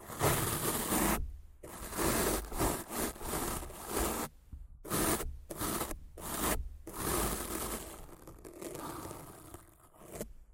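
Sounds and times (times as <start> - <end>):
rough scratching and brushing strokes on a microphone: 0.0 - 10.2.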